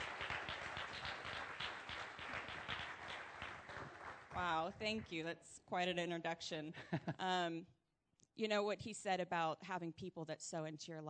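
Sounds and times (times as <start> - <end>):
church congregation applauding to welcome a speaker during a morning service: 0.0 - 5.1
speech: 4.4 - 7.8, 8.4 - 11.0.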